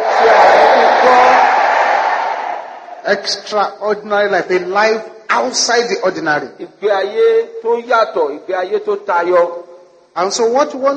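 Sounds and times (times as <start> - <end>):
audience shouting amen: 0.0 - 3.0
speech: 3.1 - 9.6, 10.2 - 10.9.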